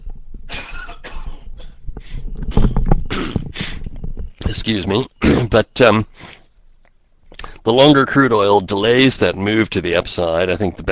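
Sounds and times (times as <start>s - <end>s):
person coughing: 0.5s - 1.8s, 5.2s - 5.5s
speech: 4.6s - 6.2s, 7.6s - 10.8s.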